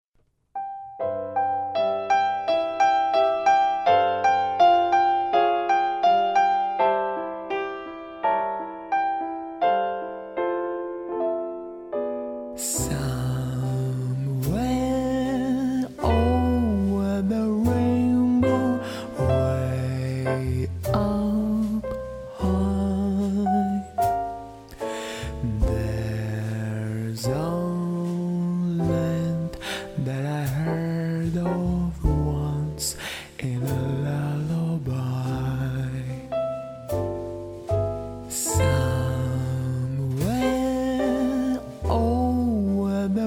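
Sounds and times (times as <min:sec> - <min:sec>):
chillout jazz: 0:01.3 - 0:43.2.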